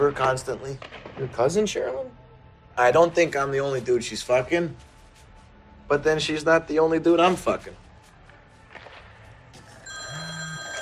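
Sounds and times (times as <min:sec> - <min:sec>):
speech: 0:00.1 - 0:02.1, 0:02.8 - 0:04.9, 0:05.9 - 0:07.8
phone ringing with an electronic tone: 0:09.8 - 0:10.8.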